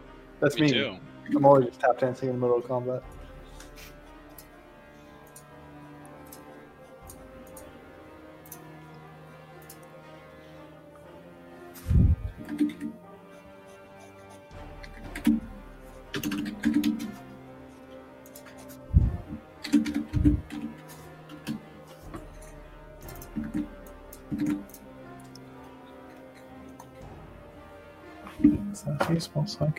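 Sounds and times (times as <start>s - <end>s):
steady tonal background: 0.0s - 29.7s
speech: 0.4s - 3.2s, 29.5s - 29.7s
computer keyboard typing while editing: 16.1s - 17.1s, 19.6s - 20.7s.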